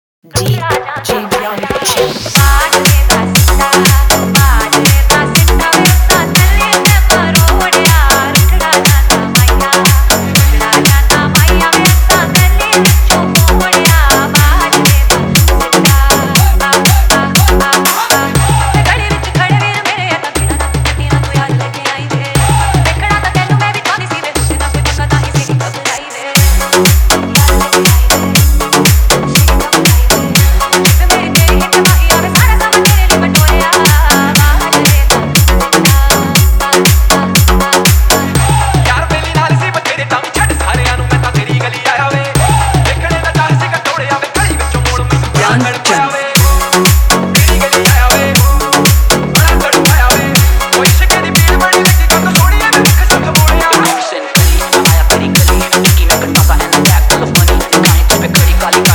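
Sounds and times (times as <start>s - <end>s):
bass remix song: 0.2s - 58.9s.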